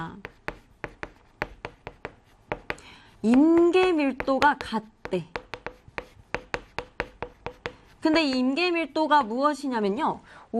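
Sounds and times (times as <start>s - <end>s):
speech: 0.0s - 0.3s, 3.2s - 5.4s, 8.0s - 10.5s
pen writing: 0.2s - 3.4s, 4.2s - 8.2s.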